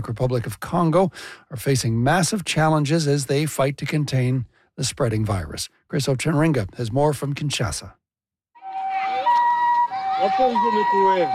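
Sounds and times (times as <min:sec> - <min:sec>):
speech: 0:00.0 - 0:08.0, 0:10.2 - 0:11.3
ambulance siren in Ituri province: 0:08.6 - 0:11.3.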